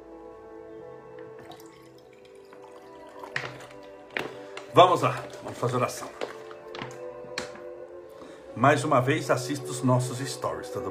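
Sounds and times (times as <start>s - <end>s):
water poured into a small cup: 1.3s - 5.5s
speech: 4.8s - 6.2s, 8.6s - 10.8s.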